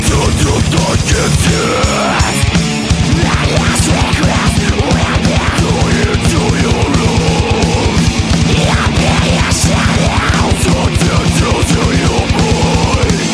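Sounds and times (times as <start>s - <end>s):
death metal music: 0.0s - 13.3s.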